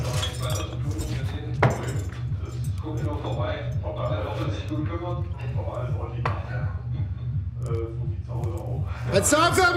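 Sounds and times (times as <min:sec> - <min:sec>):
glass bottles clinking while rummaging in fridge: 0:00.0 - 0:03.8
talking: 0:00.0 - 0:09.7
speech: 0:04.7 - 0:06.8, 0:09.1 - 0:09.7.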